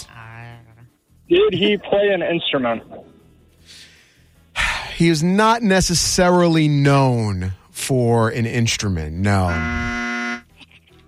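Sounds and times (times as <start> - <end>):
speech: 1.3 - 3.1, 5.0 - 9.9
game show buzzer: 9.3 - 10.5.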